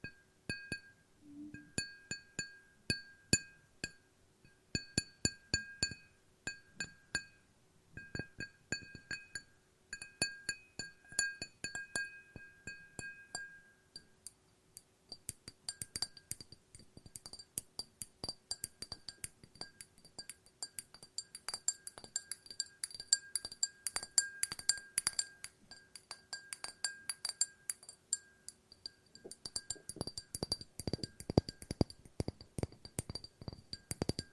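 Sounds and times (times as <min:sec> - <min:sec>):
glass tapping: 0:00.0 - 0:01.0, 0:01.6 - 0:07.4, 0:08.0 - 0:34.3
thin ringing tone of glass: 0:00.1 - 0:04.9, 0:08.0 - 0:14.2, 0:18.2 - 0:34.3.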